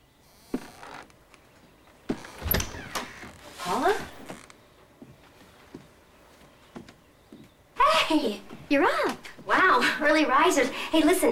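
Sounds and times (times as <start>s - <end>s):
bedroom door opening: 0.3s - 1.5s, 2.1s - 4.6s
speech: 8.7s - 9.2s, 10.0s - 11.3s.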